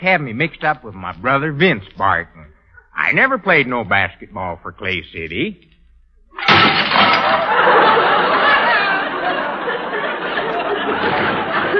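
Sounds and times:
speech: 0:00.0 - 0:02.4, 0:03.0 - 0:05.7
clattering and tinkling debris: 0:06.4 - 0:07.8
dishes dropped and crashing, breaking and shattering: 0:06.4 - 0:08.6
laughter: 0:07.0 - 0:11.7.

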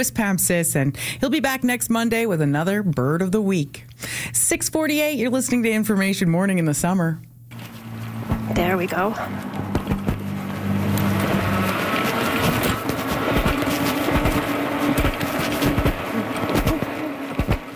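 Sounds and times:
speech: 0:00.0 - 0:07.3, 0:08.5 - 0:09.5
cyclist taking off on an e-bike: 0:07.5 - 0:17.7.

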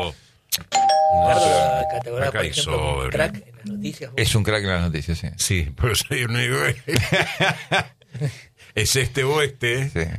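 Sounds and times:
speech: 0:00.0 - 0:10.1
radio time signal beep: 0:00.8 - 0:02.1.

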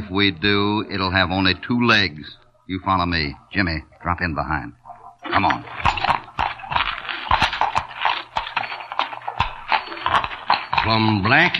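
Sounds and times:
speech: 0:00.1 - 0:05.9, 0:10.8 - 0:11.5
horse hooves clip-clopping into mine: 0:04.9 - 0:11.5.

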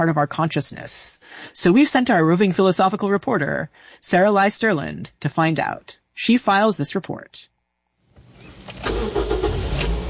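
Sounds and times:
speech: 0:00.0 - 0:07.5
car engine starting and running: 0:08.1 - 0:10.0.

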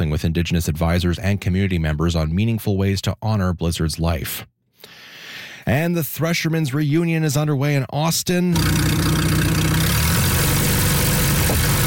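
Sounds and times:
speech: 0:00.2 - 0:04.5, 0:05.6 - 0:09.3
old antique tractor engine idling: 0:08.6 - 0:11.8.

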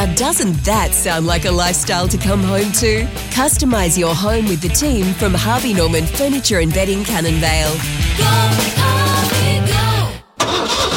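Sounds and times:
speech: 0:00.0 - 0:09.1
slow-to-start car engine cranking: 0:10.4 - 0:10.9.

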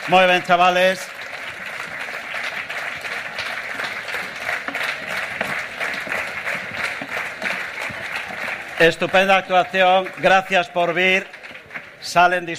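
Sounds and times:
audience applause for a choir: 0:00.0 - 0:12.5
speech: 0:00.1 - 0:01.2, 0:08.8 - 0:11.4, 0:12.0 - 0:12.5.

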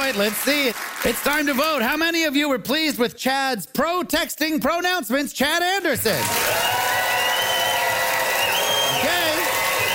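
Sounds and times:
crowd applauding: 0:00.0 - 0:01.8, 0:06.1 - 0:09.9
speech: 0:00.1 - 0:06.8
crowd cheering with shouting voices and whoops: 0:06.2 - 0:09.9.

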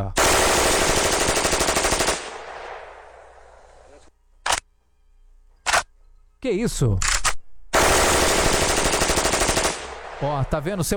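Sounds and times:
speech: 0:00.0 - 0:00.2, 0:06.4 - 0:07.2, 0:10.2 - 0:10.9
rapid gunfire: 0:00.2 - 0:02.8, 0:07.8 - 0:10.6.

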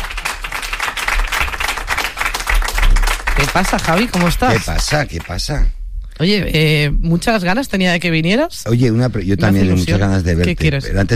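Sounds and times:
audience applause: 0:00.0 - 0:05.4
speech: 0:03.4 - 0:11.1.

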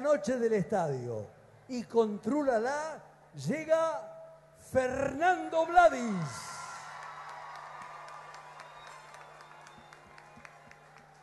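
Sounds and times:
speech: 0:00.0 - 0:04.1, 0:04.7 - 0:06.5
audience applause: 0:06.2 - 0:11.2.

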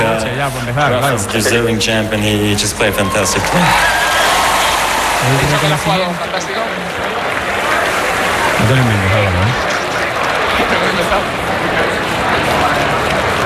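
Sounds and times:
speech: 0:00.5 - 0:04.2, 0:05.2 - 0:07.2, 0:08.6 - 0:09.7, 0:10.7 - 0:11.9
ovation for Roger Federer: 0:02.8 - 0:13.4.

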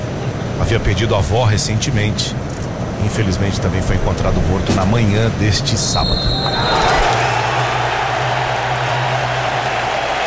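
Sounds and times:
speech: 0:00.6 - 0:07.0
stadium crowd applause: 0:07.0 - 0:10.2.

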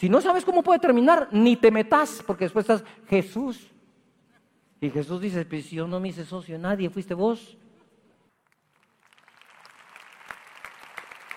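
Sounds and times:
speech: 0:00.0 - 0:03.8, 0:04.8 - 0:07.6
audience applause: 0:08.6 - 0:11.3.

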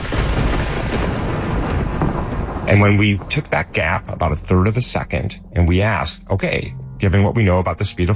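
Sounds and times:
missile strike explosion: 0:00.0 - 0:04.2
speech: 0:02.7 - 0:08.1.

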